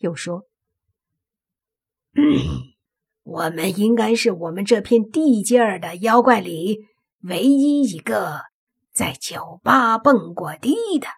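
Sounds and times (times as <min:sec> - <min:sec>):
speech: 0:00.0 - 0:00.5, 0:02.1 - 0:11.1
throat clearing: 0:02.1 - 0:02.8.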